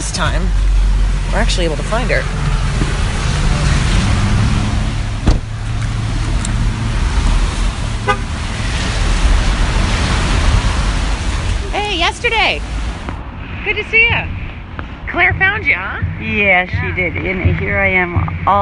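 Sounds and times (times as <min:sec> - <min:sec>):
pouring rain: 0:00.0 - 0:13.2
speech: 0:00.2 - 0:02.7, 0:12.0 - 0:12.8, 0:13.6 - 0:14.4, 0:15.1 - 0:18.6.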